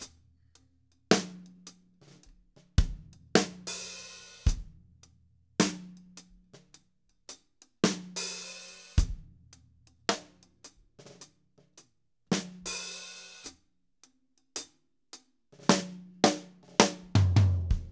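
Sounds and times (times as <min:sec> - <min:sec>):
slow drum groove: 0:01.1 - 0:05.0, 0:05.6 - 0:13.6, 0:15.6 - 0:17.9.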